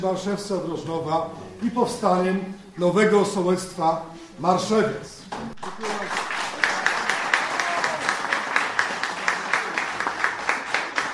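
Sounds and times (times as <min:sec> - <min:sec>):
speech: 0:00.0 - 0:06.2
villagers applauding a vote result: 0:05.5 - 0:11.1.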